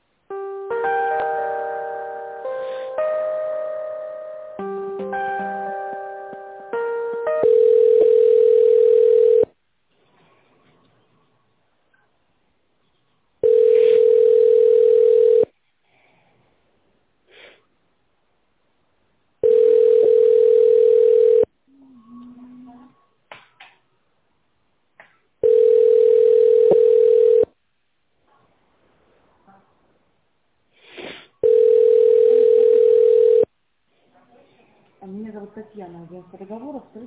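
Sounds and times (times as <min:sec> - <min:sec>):
melodic electronic telephone tones during a call transfer: 0:00.3 - 0:09.5, 0:13.4 - 0:15.5, 0:19.4 - 0:21.5, 0:25.4 - 0:27.5, 0:31.4 - 0:33.5.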